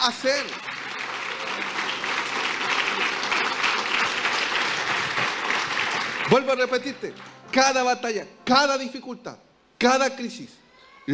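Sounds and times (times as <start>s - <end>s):
speech: 0.0s - 0.7s, 6.3s - 11.1s
audience applause: 0.0s - 7.4s.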